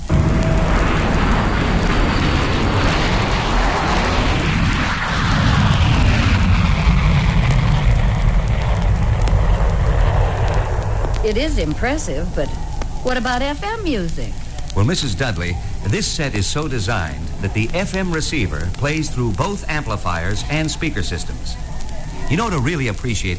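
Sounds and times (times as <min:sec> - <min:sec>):
jet plane roaring in flight: 0:00.0 - 0:23.3
speech: 0:11.4 - 0:21.7, 0:22.3 - 0:23.3.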